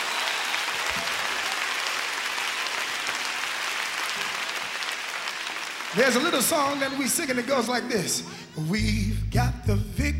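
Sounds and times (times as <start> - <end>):
crowd clapping hands: 0.0 - 7.8
speech: 6.0 - 10.1.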